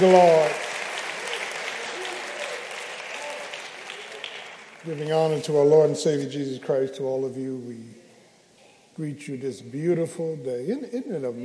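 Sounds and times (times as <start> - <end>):
speech: 0.0 - 0.6, 4.8 - 8.0, 9.0 - 11.4
audience applauding choir and musicians: 0.0 - 5.9.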